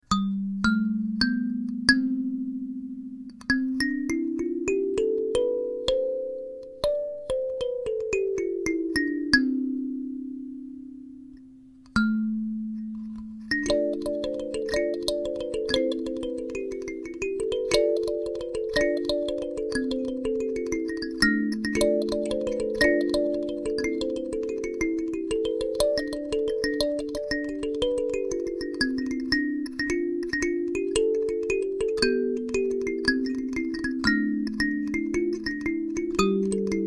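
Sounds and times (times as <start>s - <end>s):
twelve-note kalimba: 0.0s - 36.8s.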